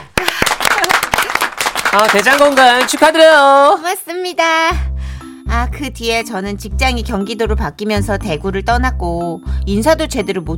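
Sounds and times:
clapping: 0:00.0 - 0:03.2
speech: 0:02.0 - 0:04.9, 0:05.5 - 0:10.5.

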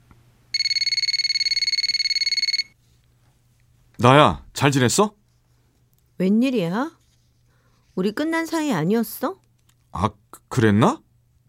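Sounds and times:
telephone ringing with electronic trill: 0:00.5 - 0:02.8
speech: 0:04.0 - 0:05.2, 0:06.2 - 0:07.0, 0:08.0 - 0:09.4, 0:10.0 - 0:11.0.

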